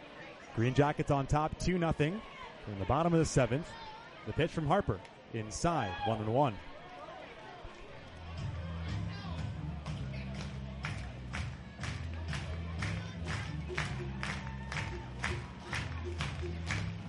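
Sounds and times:
baseball stadium crowd murmur of many voices: 0:00.0 - 0:17.0
speech: 0:00.6 - 0:06.7
rhythmic rounds of clapping: 0:09.8 - 0:17.0.

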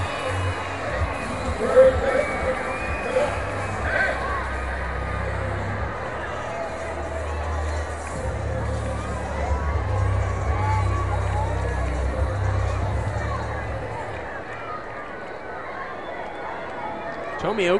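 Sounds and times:
baseball crowd cheering and roaring: 0:00.0 - 0:17.7.

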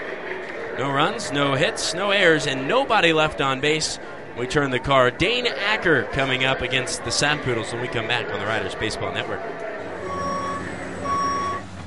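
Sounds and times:
speech: 0:00.8 - 0:09.7
low continuous engine rumble: 0:09.5 - 0:11.8
reversing beeps of construction equipment: 0:10.0 - 0:11.6.

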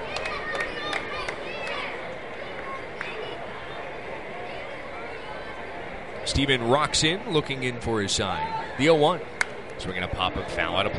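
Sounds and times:
sharp claps: 0:00.0 - 0:01.8
shouts: 0:00.0 - 0:03.4
ballpark crowd murmur: 0:00.0 - 0:10.9
speech: 0:06.3 - 0:10.9.

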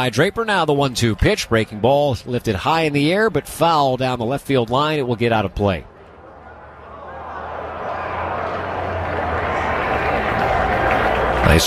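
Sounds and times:
speech: 0:00.0 - 0:05.9
ballpark crowd cheering: 0:00.0 - 0:11.6.

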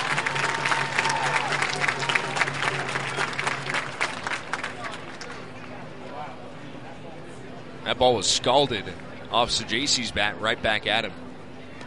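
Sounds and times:
stadium fans applauding: 0:00.0 - 0:05.8
speech: 0:07.9 - 0:11.2.

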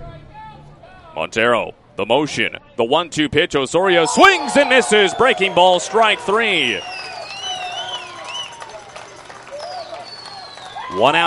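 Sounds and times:
speech: 0:01.2 - 0:07.0, 0:10.9 - 0:11.2
baseball crowd cheering: 0:03.9 - 0:11.2
shrill whistles: 0:04.0 - 0:11.2.

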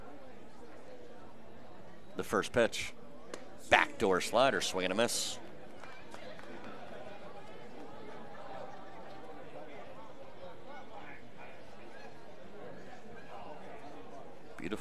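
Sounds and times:
rowdy baseball stadium crowd: 0:00.0 - 0:14.8
speech: 0:02.2 - 0:03.0, 0:03.6 - 0:05.4.

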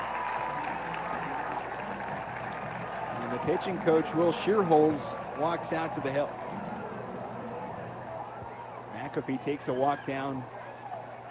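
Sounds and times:
crowd applause: 0:00.0 - 0:08.8
speech: 0:03.4 - 0:06.5, 0:09.2 - 0:10.6.

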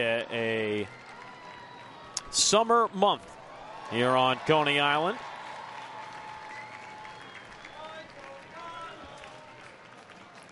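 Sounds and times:
speech: 0:00.0 - 0:01.0, 0:02.3 - 0:05.3
stadium crowd clapping and cheering: 0:00.0 - 0:02.8, 0:03.4 - 0:10.5
thin high whistles: 0:06.3 - 0:08.0.

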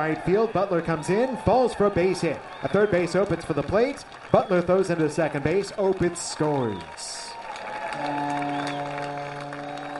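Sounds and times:
speech: 0:00.0 - 0:07.2, 0:08.0 - 0:08.9
small foghorn blast at ballpark: 0:07.9 - 0:09.9.

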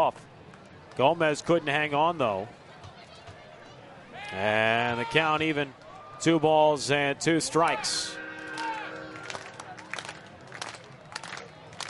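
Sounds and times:
speech: 0:00.0 - 0:00.3, 0:01.0 - 0:02.6, 0:04.3 - 0:08.2
crowd clapping along: 0:09.2 - 0:11.8.

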